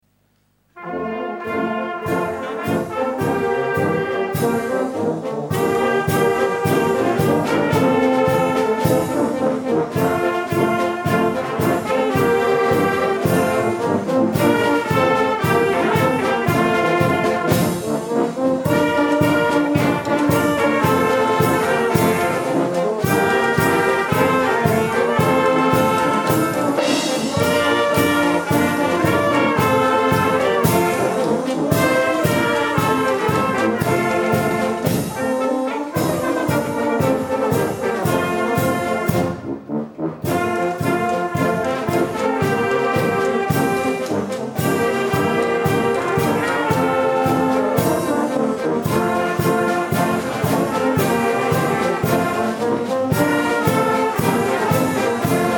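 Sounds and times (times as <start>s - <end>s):
fanfare: 0.3s - 55.5s.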